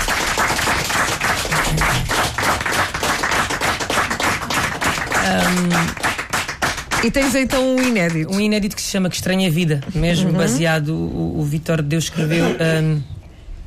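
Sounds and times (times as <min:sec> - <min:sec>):
crowd applause: 0:00.0 - 0:08.2
speech: 0:05.3 - 0:06.0, 0:07.0 - 0:13.2.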